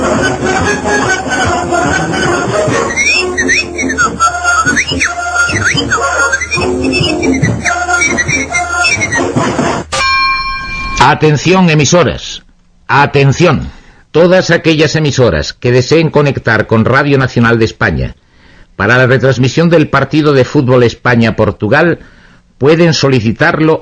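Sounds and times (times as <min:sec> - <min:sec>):
whistled broadcast sign-off: 0:00.1 - 0:09.4
speech: 0:11.1 - 0:23.8.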